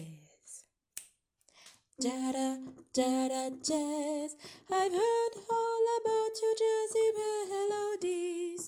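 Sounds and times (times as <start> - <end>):
alto voice part: 2.0 - 8.6.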